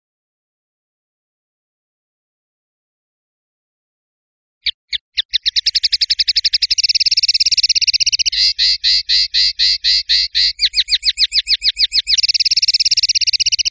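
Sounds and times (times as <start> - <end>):
European goldfinch singing: 4.6 - 13.6.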